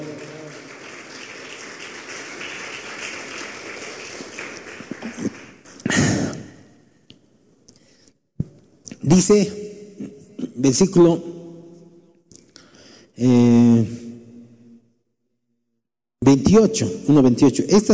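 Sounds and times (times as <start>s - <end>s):
audience applause: 0.0s - 6.1s
speech: 9.1s - 9.6s, 10.6s - 11.3s, 16.6s - 17.9s.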